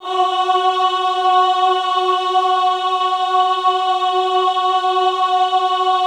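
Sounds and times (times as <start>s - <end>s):
choir singing ahh: 0.0s - 6.0s.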